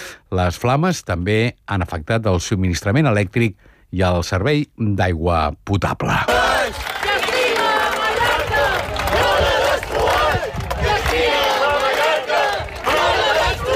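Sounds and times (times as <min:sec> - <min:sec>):
speech: 0:00.3 - 0:06.8
crowd of 10,000 people shouting in a human chain: 0:06.3 - 0:13.7.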